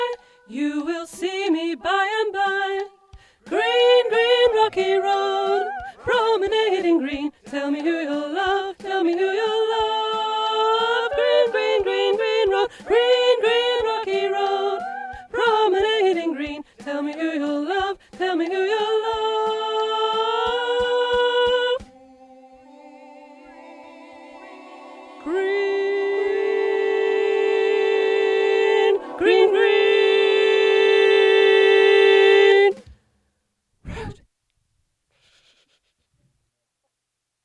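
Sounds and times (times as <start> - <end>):
alto voice singing: 0.0 - 32.8.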